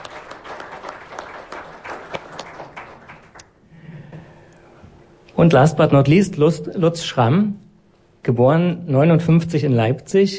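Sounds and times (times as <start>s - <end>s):
audience applause: 0.0s - 3.5s
speech: 5.4s - 7.6s, 8.2s - 10.3s.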